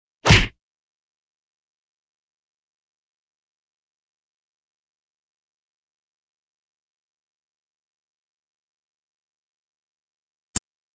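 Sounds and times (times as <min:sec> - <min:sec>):
fight sounds: 0:00.2 - 0:00.6.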